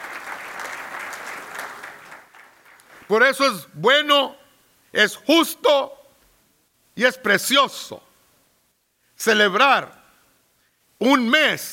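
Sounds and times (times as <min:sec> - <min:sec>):
audience applauding: 0:00.0 - 0:03.1
speech: 0:03.1 - 0:06.0, 0:07.0 - 0:08.1, 0:09.2 - 0:10.0, 0:11.0 - 0:11.7.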